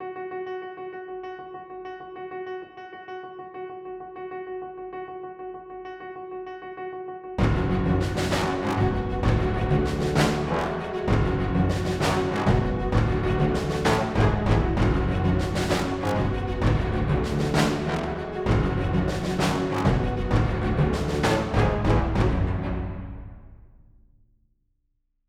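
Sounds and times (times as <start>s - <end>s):
gritty action music: 7.4s - 23.5s.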